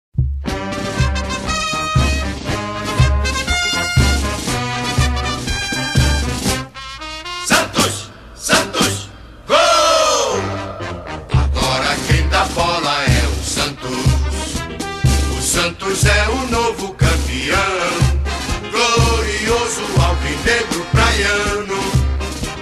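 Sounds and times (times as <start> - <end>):
club anthem music: 0.5 - 22.6.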